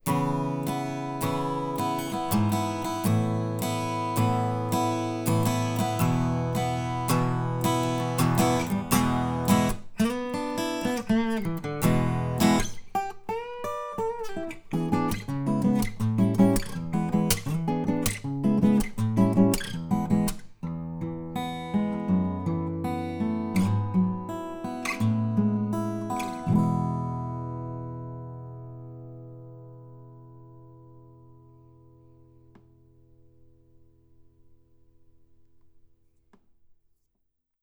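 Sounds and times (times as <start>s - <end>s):
acoustic guitar: 0.0s - 36.4s.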